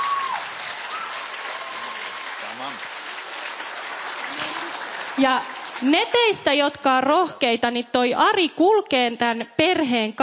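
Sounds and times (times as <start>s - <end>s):
audience applause: 0.0s - 6.4s
speech: 5.2s - 10.2s.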